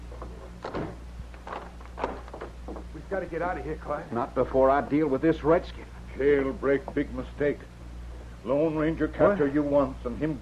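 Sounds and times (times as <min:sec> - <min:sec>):
low hum: 0:00.0 - 0:10.3
door shut with a soft wooden knock: 0:00.2 - 0:01.0
speech: 0:03.1 - 0:07.8, 0:08.4 - 0:10.3.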